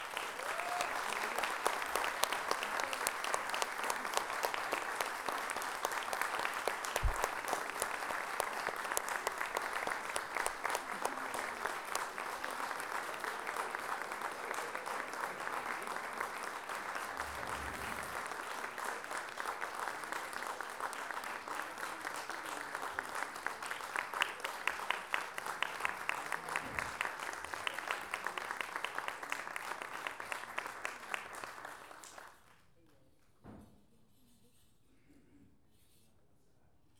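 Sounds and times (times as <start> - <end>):
live audience applause welcoming a band: 0.0 - 32.4
faint low thumps: 7.0 - 7.4.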